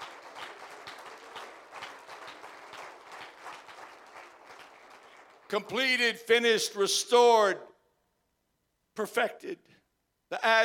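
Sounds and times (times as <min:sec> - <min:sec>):
audience clapping hands: 0:00.0 - 0:06.0
speech: 0:05.5 - 0:07.7, 0:09.0 - 0:10.6.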